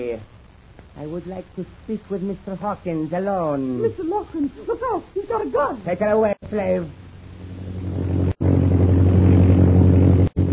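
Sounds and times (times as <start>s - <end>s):
speech: 0.0s - 0.4s, 1.0s - 7.0s
British plane flying overhead: 7.4s - 10.5s.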